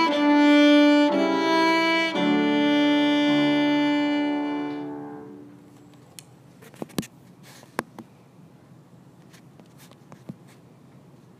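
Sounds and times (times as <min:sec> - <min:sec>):
French folk song with piano: 0:00.0 - 0:05.4.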